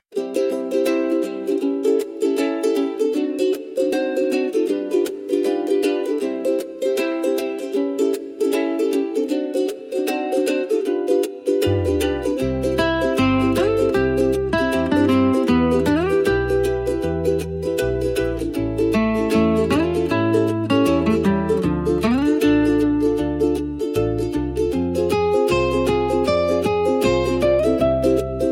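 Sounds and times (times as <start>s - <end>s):
Hawaiian music: 0.0s - 28.5s.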